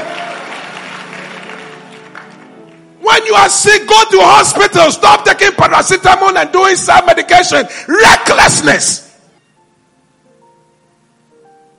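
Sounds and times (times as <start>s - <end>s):
audience clapping hands: 0.0s - 3.0s
speech: 3.2s - 9.0s.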